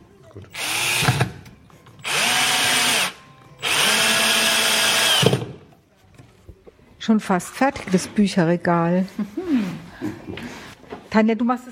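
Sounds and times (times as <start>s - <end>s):
speech: 0.4s - 0.6s, 7.1s - 10.2s, 11.1s - 11.6s
power drill drilling into chipboard: 0.5s - 1.3s, 2.0s - 5.5s.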